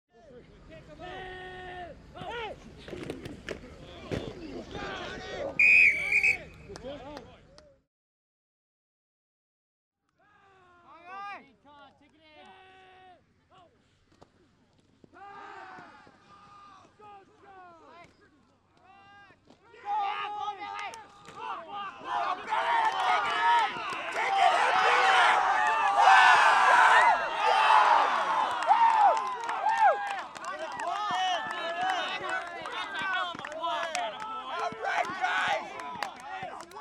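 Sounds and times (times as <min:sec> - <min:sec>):
amateur American football game: 0:00.2 - 0:07.8, 0:10.2 - 0:36.7.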